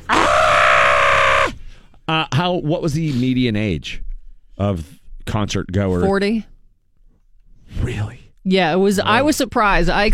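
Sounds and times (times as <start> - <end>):
person imitating a singer's weird scream: 0.0 - 1.6
speech: 2.1 - 4.0, 4.6 - 6.5, 7.7 - 10.1.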